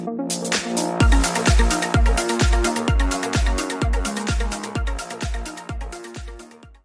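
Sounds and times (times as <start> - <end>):
followers alert beat: 0.3 - 6.6.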